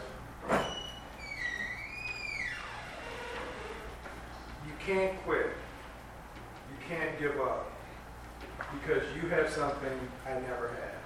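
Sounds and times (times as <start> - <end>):
door closing thump: 0.4 - 0.8
long high creaking squeal: 0.6 - 4.0
speech: 4.8 - 5.6, 6.9 - 7.7, 8.7 - 11.0.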